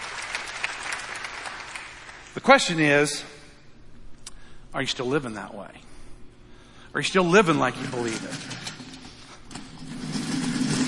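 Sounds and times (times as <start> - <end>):
audience applauding: 0.0 - 2.3
speech: 2.4 - 3.3, 4.7 - 5.9, 6.9 - 8.7.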